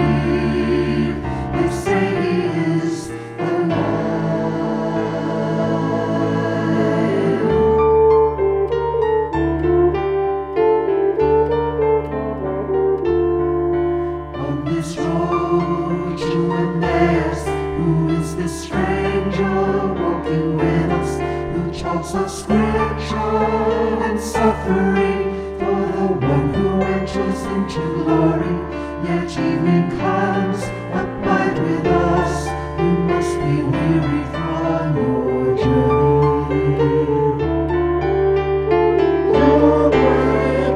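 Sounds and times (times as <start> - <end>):
SATB choir singing: 0.0 - 10.0, 13.5 - 40.7
French horn: 0.0 - 40.7
piano: 0.0 - 40.7.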